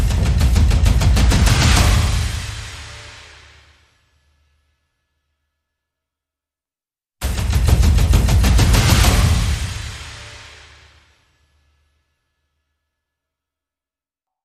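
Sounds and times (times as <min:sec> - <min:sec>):
percussion: 0:00.0 - 0:04.8, 0:07.2 - 0:12.4.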